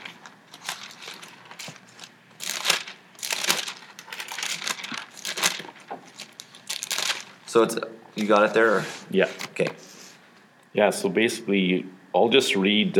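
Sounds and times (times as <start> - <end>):
thin Bible pages being flipped: 0.0 - 7.5
speech: 7.6 - 9.8, 10.8 - 12.9.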